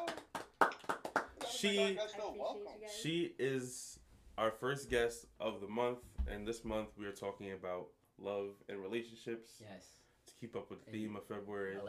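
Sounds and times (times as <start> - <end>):
round of applause: 0.0 - 2.0
speech: 1.6 - 11.8.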